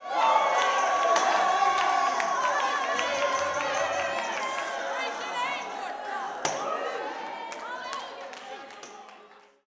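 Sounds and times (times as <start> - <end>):
tambourine blues and soul pattern: 0.2 - 6.8.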